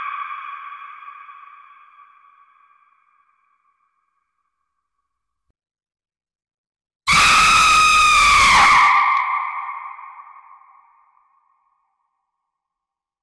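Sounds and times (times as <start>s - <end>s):
scary person screaming sound effect: 7.1s - 9.6s.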